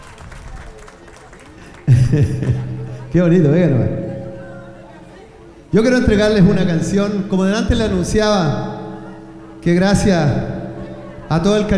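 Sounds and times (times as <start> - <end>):
audience applause: 0.0 - 2.6
laughter: 0.8 - 7.0, 7.8 - 11.7
speech: 2.1 - 4.0, 5.7 - 8.8, 9.6 - 10.5, 11.3 - 11.7.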